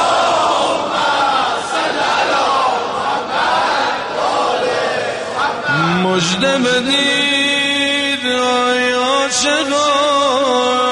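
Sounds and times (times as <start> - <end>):
crowd loudly reciting salawat, a Shia blessing chant: 0.0 - 6.8
speech: 6.2 - 7.3, 8.3 - 10.9.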